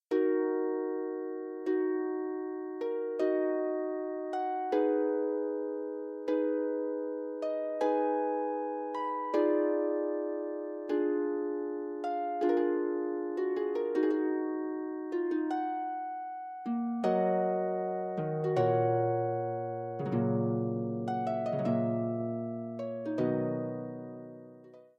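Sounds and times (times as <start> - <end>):
harp prelude: 0.1 - 24.9.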